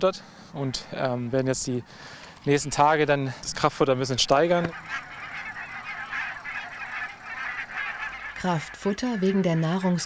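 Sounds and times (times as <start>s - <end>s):
speech: 0.0s - 5.1s, 8.4s - 10.0s
barnacle geese honking: 2.0s - 10.0s.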